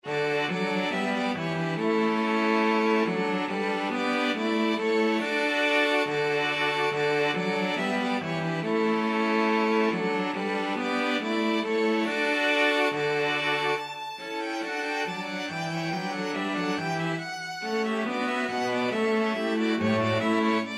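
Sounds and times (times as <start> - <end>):
string quartet: 0.0 - 20.7.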